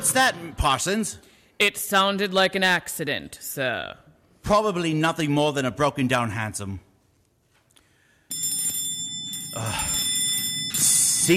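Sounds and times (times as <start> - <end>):
speech: 0.0 - 6.9, 9.6 - 10.0
bell ringing: 8.3 - 11.3.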